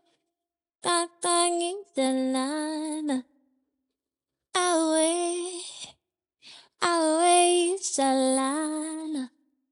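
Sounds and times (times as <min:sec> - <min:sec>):
a cappella pop R&B singing at 150 BPM in A minor: 0:00.8 - 0:03.3, 0:04.6 - 0:05.8, 0:06.8 - 0:09.3.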